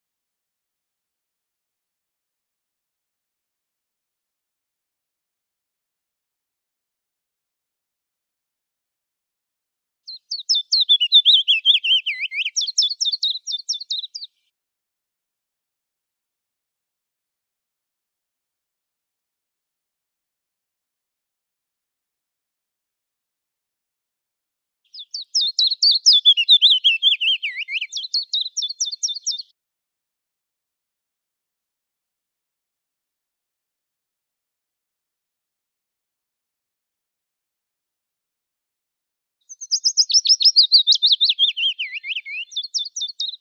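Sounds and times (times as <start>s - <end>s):
Fitis mixed song: 10.1s - 14.5s, 24.9s - 29.6s, 39.4s - 43.3s.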